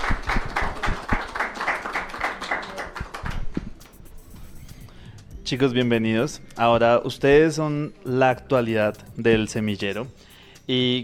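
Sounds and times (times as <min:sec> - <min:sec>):
audience applause: 0:00.0 - 0:03.7
speech: 0:05.5 - 0:11.0.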